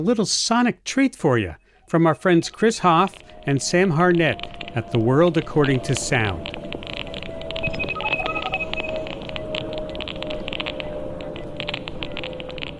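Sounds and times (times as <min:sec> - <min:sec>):
speech: 0:00.0 - 0:06.7
Wi-Fi network signals as crackling static: 0:02.2 - 0:12.7
Wi-Fi network signals as electronic beeping tones: 0:02.5 - 0:12.3.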